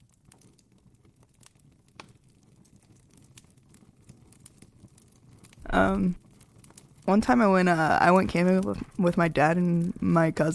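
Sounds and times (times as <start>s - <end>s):
campfire crackling: 0.0s - 10.5s
low steady hiss: 5.2s - 10.5s
speech: 5.7s - 6.2s, 7.1s - 10.5s.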